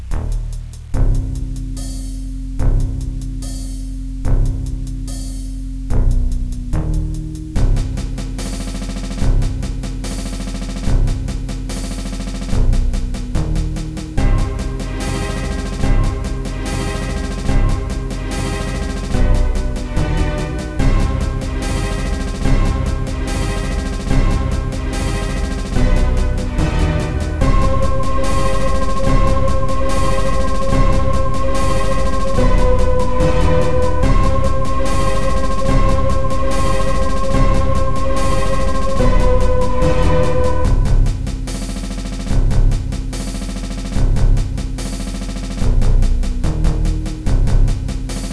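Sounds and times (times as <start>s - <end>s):
march music: 0.2s - 48.3s.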